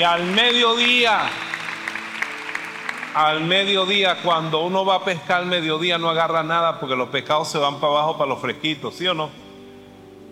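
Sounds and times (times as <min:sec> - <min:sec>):
speech: 0:00.0 - 0:01.5, 0:03.1 - 0:09.4
scattered audience claps during a religious sermon: 0:00.0 - 0:04.0.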